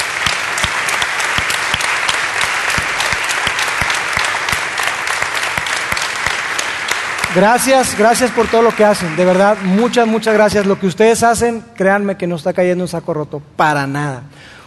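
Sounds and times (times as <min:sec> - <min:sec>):
audience applause: 0:00.0 - 0:10.8
speech: 0:07.4 - 0:14.6.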